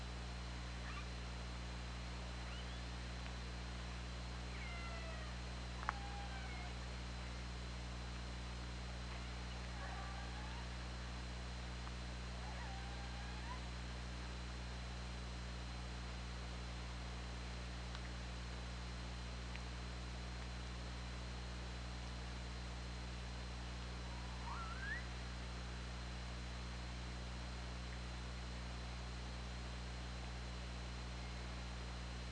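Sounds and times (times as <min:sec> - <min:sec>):
low hum and hiss: 0:00.0 - 0:32.2
killer whale calls: 0:24.2 - 0:25.1.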